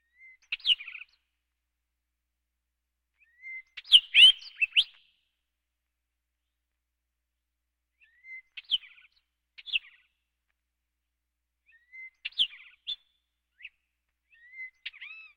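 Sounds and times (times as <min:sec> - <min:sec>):
birds: 0:00.0 - 0:01.4, 0:03.2 - 0:05.4, 0:08.0 - 0:10.4, 0:11.6 - 0:15.3.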